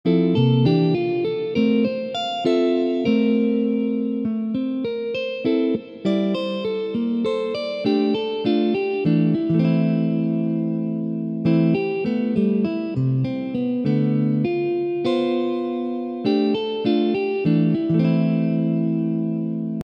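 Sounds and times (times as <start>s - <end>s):
jazz guitar etude: 0.0s - 19.8s.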